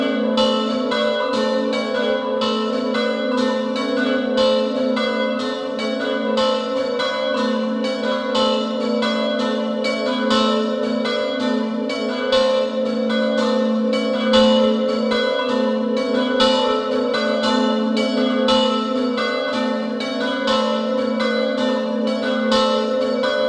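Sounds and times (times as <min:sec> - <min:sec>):
bells ringing in Dordolla, Moggio Udinese: 0:00.0 - 0:23.4.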